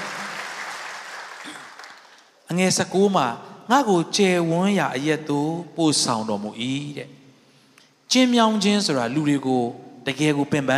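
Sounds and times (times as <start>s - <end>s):
church congregation clapping hands in praise during a sermon: 0.0s - 2.4s
speech: 2.5s - 7.2s, 8.1s - 10.7s.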